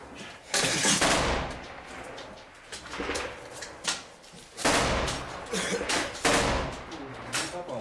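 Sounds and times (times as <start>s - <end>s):
automatic grenade launcher firing in a video game: 0.8s - 1.9s, 4.6s - 7.6s.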